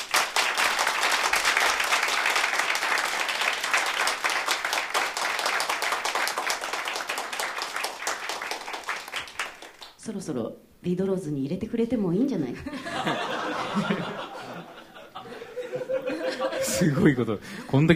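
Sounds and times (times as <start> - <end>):
concert applause for a touring backing band: 0.0 - 9.9
speech: 10.1 - 14.2, 16.8 - 17.9
laughter: 12.6 - 17.9.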